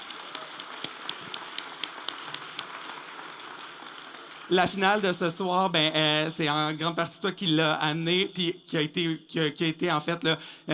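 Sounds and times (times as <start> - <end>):
audience applauding: 0.0 - 5.3
speech: 4.5 - 10.7.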